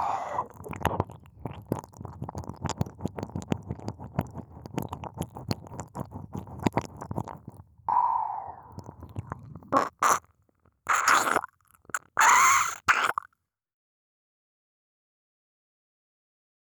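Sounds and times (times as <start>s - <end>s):
ASMR ear licking sounds: 0.0s - 10.3s, 10.9s - 13.3s.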